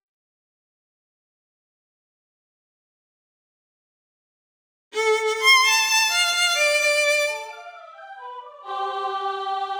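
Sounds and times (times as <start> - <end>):
allegro music piece: 5.0 - 9.4.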